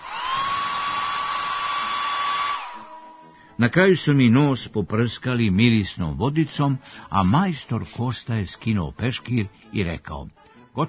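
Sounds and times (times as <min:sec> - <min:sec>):
hair dryer blowing: 0:00.0 - 0:03.6
speech: 0:03.6 - 0:10.8.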